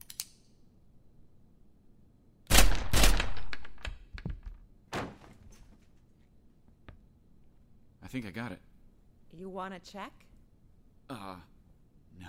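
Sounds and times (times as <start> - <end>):
gunshots fired through a door: 2.5 - 3.8
speech: 8.1 - 8.7, 9.3 - 10.3, 11.1 - 11.5.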